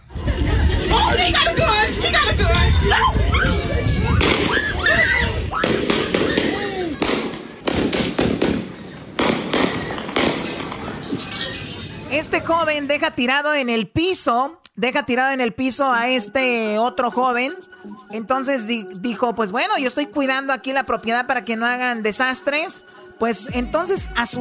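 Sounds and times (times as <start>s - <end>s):
laughter: 0.0s - 7.6s
gunshot in recorded video clip: 4.2s - 4.7s, 5.6s - 11.2s
speech: 12.4s - 24.3s.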